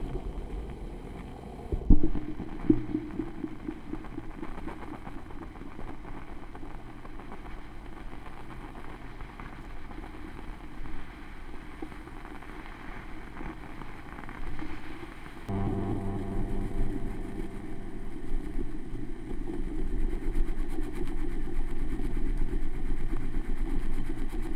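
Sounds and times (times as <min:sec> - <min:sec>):
vinyl record noise: 0:00.0 - 0:24.4
tape echo effect: 0:15.5 - 0:20.4.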